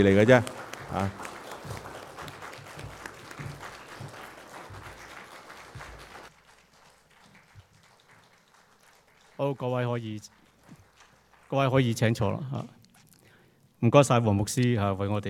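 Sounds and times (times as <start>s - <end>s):
speech: 0.0s - 1.3s, 9.4s - 10.4s, 11.5s - 12.8s, 13.8s - 15.2s
audience applause: 0.0s - 12.1s.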